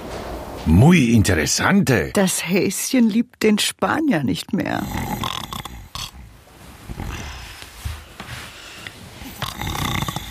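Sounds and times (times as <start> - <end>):
speech: 0.6 - 5.4
man snoring: 4.8 - 6.3, 6.9 - 7.5, 9.2 - 10.2.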